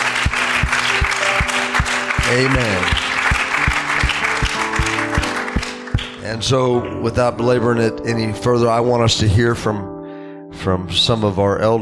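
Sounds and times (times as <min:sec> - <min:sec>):
audience hand clapping: 0:00.0 - 0:06.2
speech: 0:02.3 - 0:03.0, 0:06.3 - 0:09.9, 0:10.6 - 0:11.8.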